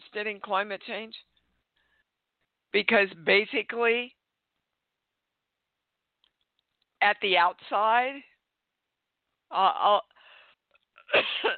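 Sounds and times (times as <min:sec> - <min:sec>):
speech: 0:00.2 - 0:01.3, 0:02.7 - 0:04.2, 0:07.0 - 0:08.3, 0:09.5 - 0:10.1, 0:11.1 - 0:11.5
person coughing from a tickle in the throat: 0:11.0 - 0:11.5.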